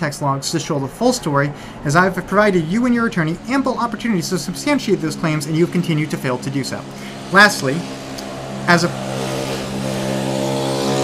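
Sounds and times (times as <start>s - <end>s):
speech: 0.0s - 8.0s, 8.7s - 9.3s
car driving by outside: 0.0s - 11.0s.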